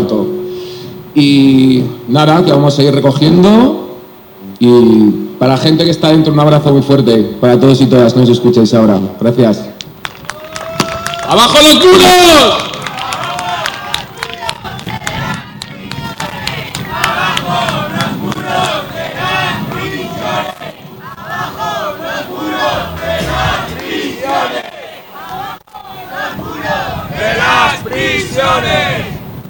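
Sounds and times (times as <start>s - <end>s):
speech: 1.2s - 3.8s, 4.6s - 9.8s, 11.3s - 12.7s
crowd clapping at a march against the Zuera mega-prison: 10.0s - 11.6s, 12.3s - 20.8s, 22.4s - 25.5s
people shouting at a march against the Zuera mega-prison: 12.3s - 29.2s
crowd chanting at a march against the Zuera mega-prison in a parking lot: 12.9s - 29.2s.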